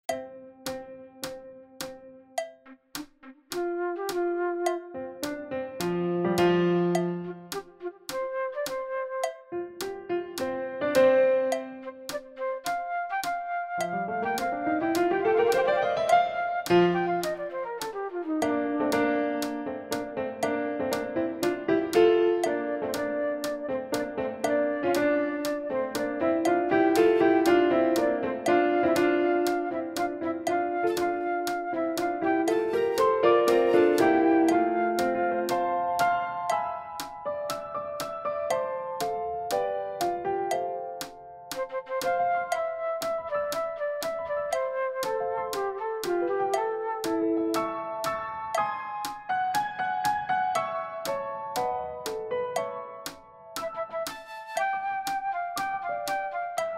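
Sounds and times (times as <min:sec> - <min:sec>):
piano: 0:00.0 - 0:56.7
fast flute: 0:03.5 - 0:06.1, 0:07.3 - 0:09.5, 0:11.6 - 0:19.9, 0:22.0 - 0:36.5, 0:41.5 - 0:48.5, 0:53.6 - 0:56.7.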